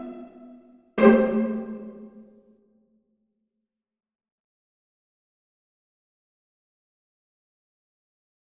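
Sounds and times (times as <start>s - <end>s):
mandolin: 0.0s - 2.2s.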